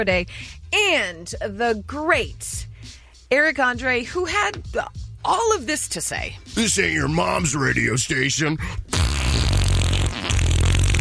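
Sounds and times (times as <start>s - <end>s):
speech: 0.0s - 9.2s
fart sound effect: 8.9s - 10.9s.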